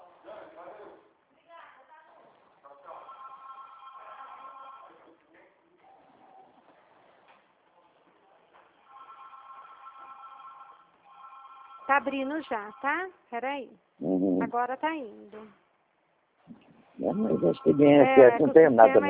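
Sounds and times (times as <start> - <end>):
telephone ringing: 2.9 - 5.1, 8.8 - 13.1, 17.2 - 19.0
speech: 11.9 - 15.6, 17.0 - 19.0.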